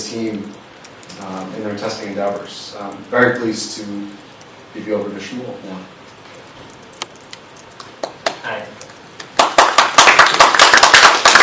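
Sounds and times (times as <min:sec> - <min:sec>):
speech: 0:00.1 - 0:06.0
audience applause at a software testing talk: 0:09.2 - 0:11.4.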